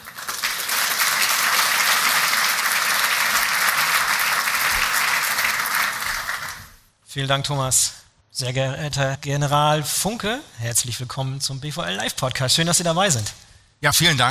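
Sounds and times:
audience applause: 0:00.0 - 0:06.7
speech: 0:07.1 - 0:14.2.

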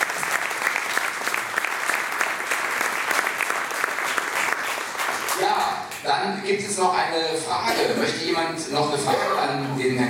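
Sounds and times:
audience applause: 0:00.0 - 0:06.0
speech: 0:05.7 - 0:10.0.

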